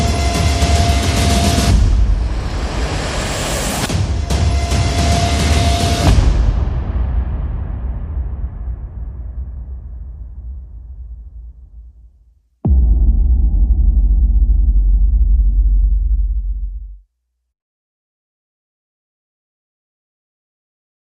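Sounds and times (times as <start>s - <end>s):
percussion and effects: 0.0s - 12.0s, 12.6s - 17.0s.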